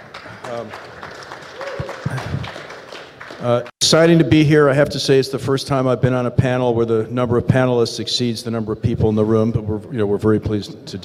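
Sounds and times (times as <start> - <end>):
round of applause for panelists: 0.0 - 3.7
speech: 0.5 - 1.1, 3.4 - 11.0.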